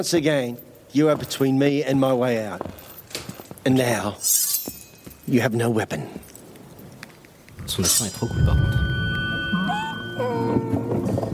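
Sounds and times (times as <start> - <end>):
speech: 0.0 - 2.9, 3.6 - 4.5, 5.3 - 6.3, 7.7 - 9.0
person imitating a donkey braying: 9.6 - 11.1.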